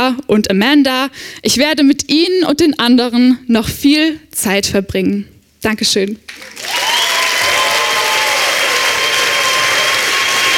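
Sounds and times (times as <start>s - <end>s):
speech: 0.1s - 6.8s
audience applause after a performance: 6.3s - 10.5s.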